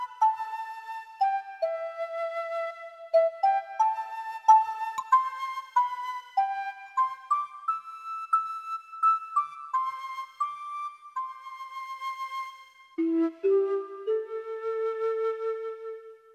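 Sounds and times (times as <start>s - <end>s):
Latin flute: 0.0s - 16.3s
kalimba: 5.0s - 7.5s.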